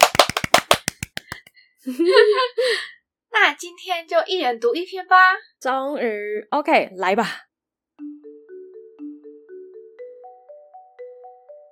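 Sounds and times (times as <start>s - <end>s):
hands clapping: 0.0s - 1.5s
speech: 1.8s - 7.5s.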